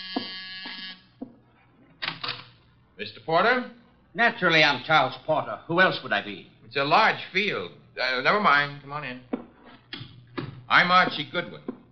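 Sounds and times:
doorbell buzzer ringing: 0:00.0 - 0:01.2
speech: 0:03.0 - 0:10.0, 0:10.7 - 0:11.7.

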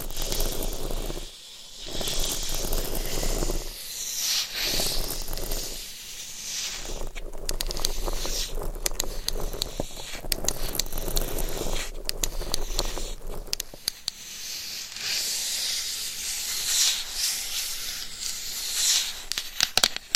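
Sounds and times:
rough scratching and rubbing against a microphone: 0:00.0 - 0:20.1
sharp taps and clicks: 0:06.9 - 0:14.2, 0:19.3 - 0:20.1.

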